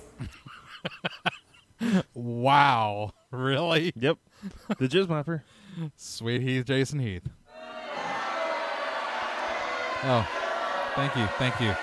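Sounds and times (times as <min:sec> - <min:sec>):
speech: 0:01.9 - 0:07.4, 0:10.0 - 0:10.4, 0:11.0 - 0:11.8
crowd cheering: 0:07.5 - 0:11.8.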